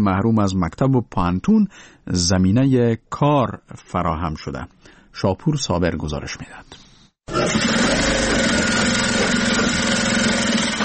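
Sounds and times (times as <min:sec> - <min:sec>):
speech: 0:00.0 - 0:08.2
electric sewing machines running: 0:07.3 - 0:10.8.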